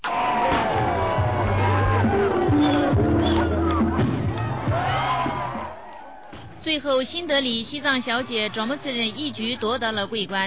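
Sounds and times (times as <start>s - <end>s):
audience applause and cheering: 0.0s - 6.7s
speech: 6.7s - 10.4s.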